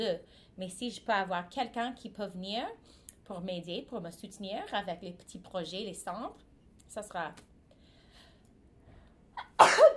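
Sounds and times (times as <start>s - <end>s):
speech: 0.0s - 7.5s
person sneezing: 9.4s - 9.9s.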